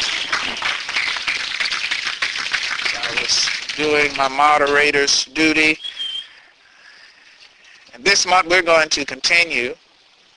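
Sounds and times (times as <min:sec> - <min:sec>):
audience applauding: 0:00.0 - 0:05.0
speech: 0:03.3 - 0:05.9, 0:08.0 - 0:09.8.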